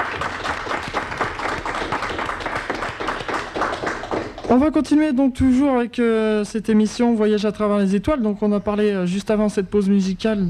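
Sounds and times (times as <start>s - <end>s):
applause: 0.0s - 4.9s
speech: 4.5s - 10.4s.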